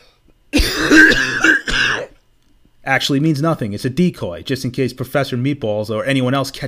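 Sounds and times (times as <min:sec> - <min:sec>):
coughing: 0:00.5 - 0:02.2
speech: 0:02.9 - 0:06.6.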